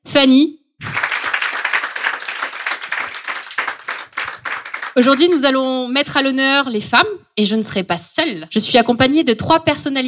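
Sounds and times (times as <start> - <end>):
speech: 0.2 - 0.9, 5.0 - 10.0
audience applause: 0.8 - 5.0.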